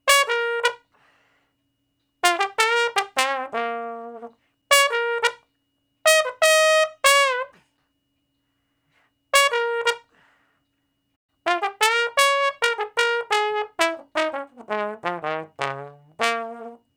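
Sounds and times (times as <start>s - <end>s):
trombone shuffle in B flat: 0.0s - 0.8s, 2.2s - 5.4s, 6.1s - 7.6s, 9.4s - 10.1s, 11.4s - 16.9s.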